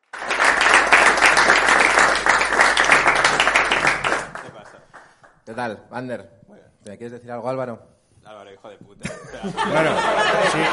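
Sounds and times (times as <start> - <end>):
audience applause welcoming guest: 0.0 - 5.3
speech: 5.5 - 10.7
laughter: 9.0 - 10.7.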